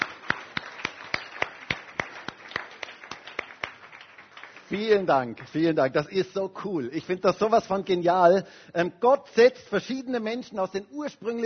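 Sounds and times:
audience applause: 0:00.0 - 0:05.6
speech: 0:04.7 - 0:11.4.

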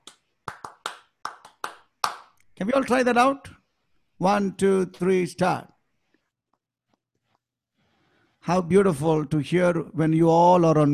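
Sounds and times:
rhythmic hand clapping sequence: 0:00.0 - 0:02.4
speech: 0:02.6 - 0:03.5, 0:04.2 - 0:05.7, 0:08.4 - 0:10.9.

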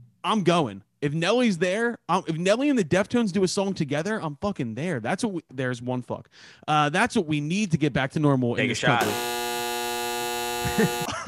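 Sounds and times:
speech: 0:00.2 - 0:09.4, 0:10.6 - 0:11.2
handheld buzzer buzzing: 0:09.0 - 0:11.1
people laughing: 0:10.6 - 0:11.2.

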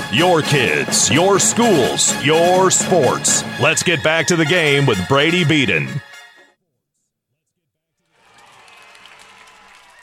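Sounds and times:
speech: 0:00.1 - 0:06.1
football fans cheering and applauding at Yale Park: 0:08.1 - 0:10.0.

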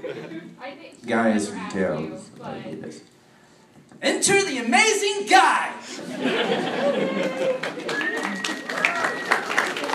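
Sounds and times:
laughter: 0:00.0 - 0:00.6, 0:05.9 - 0:08.8
speech: 0:00.6 - 0:03.2, 0:03.9 - 0:08.5
audience clapping: 0:07.1 - 0:09.9
high whoops and whistles: 0:07.9 - 0:09.6.

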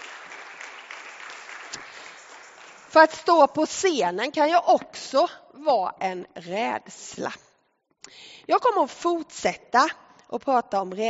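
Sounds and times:
audience applause: 0:00.0 - 0:03.0
speech: 0:02.9 - 0:07.5, 0:08.1 - 0:11.0.

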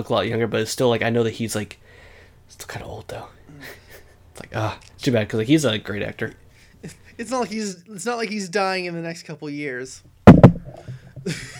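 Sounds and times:
speech: 0:00.0 - 0:03.8, 0:04.4 - 0:10.1, 0:11.2 - 0:11.5
knocking on wood: 0:10.3 - 0:11.1.

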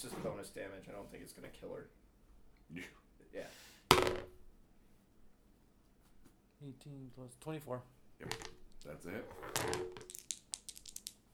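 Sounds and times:
speech: 0:00.0 - 0:02.0, 0:02.7 - 0:04.4, 0:06.6 - 0:10.2
six-sided die rolled during a tabletop role-playing game: 0:03.9 - 0:04.4, 0:08.2 - 0:11.3.

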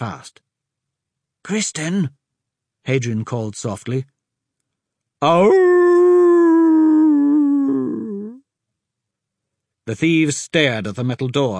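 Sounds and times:
speech: 0:00.0 - 0:00.4, 0:01.4 - 0:02.2, 0:02.8 - 0:04.1, 0:05.2 - 0:05.8, 0:09.9 - 0:11.5
wolf howling: 0:05.2 - 0:08.4.

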